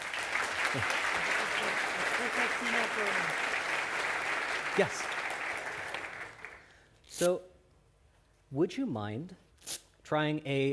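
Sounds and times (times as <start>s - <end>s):
crowd applause: 0.0s - 6.8s
speech: 0.7s - 1.0s, 2.2s - 3.7s, 4.8s - 5.1s, 7.2s - 7.5s, 8.5s - 9.4s, 10.1s - 10.7s.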